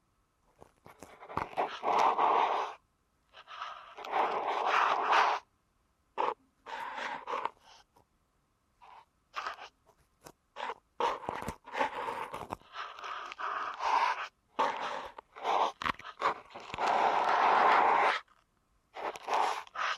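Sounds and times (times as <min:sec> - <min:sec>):
deep ear canal massage rubbing and scraping: 0:00.6 - 0:02.8, 0:03.4 - 0:05.4, 0:06.2 - 0:07.8, 0:08.8 - 0:18.4, 0:19.0 - 0:19.9.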